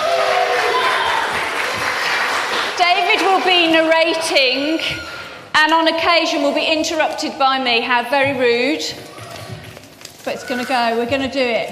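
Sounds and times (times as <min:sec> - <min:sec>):
audience clapping: 0:00.0 - 0:04.2
speech: 0:02.9 - 0:09.1, 0:10.2 - 0:11.6.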